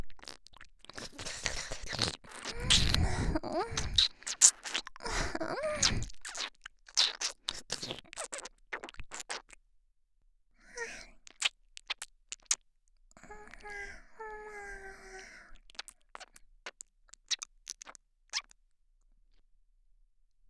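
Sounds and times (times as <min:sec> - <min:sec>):
eating with wet smacking and scratchy crunches: 0:00.1 - 0:05.2, 0:05.8 - 0:09.6, 0:11.3 - 0:12.6, 0:15.7 - 0:18.5.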